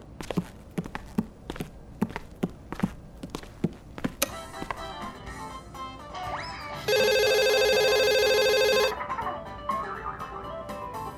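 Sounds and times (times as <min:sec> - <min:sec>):
footsteps: 0:00.0 - 0:05.9
phone ringing: 0:06.8 - 0:09.0.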